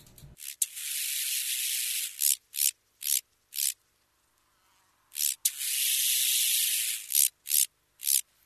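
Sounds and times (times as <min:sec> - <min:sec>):
large banded grasshopper stridulating: 0:00.4 - 0:03.8, 0:05.1 - 0:08.3.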